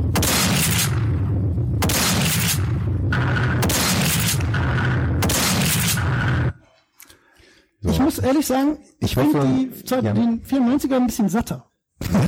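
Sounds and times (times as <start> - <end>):
video game shotgun sound effect: 0.1 - 6.6
speech: 8.1 - 12.2.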